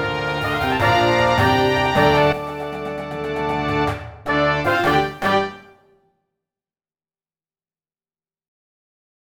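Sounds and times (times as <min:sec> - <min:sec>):
cartoon intro music: 0:00.0 - 0:06.0.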